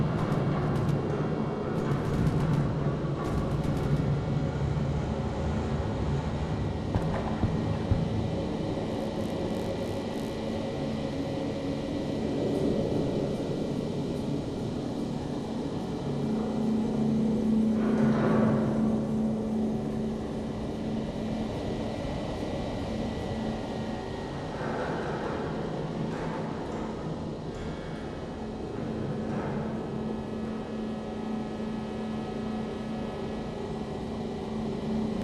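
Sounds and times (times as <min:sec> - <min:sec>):
outdoor ambience above the dome above screens: 0:00.0 - 0:35.2.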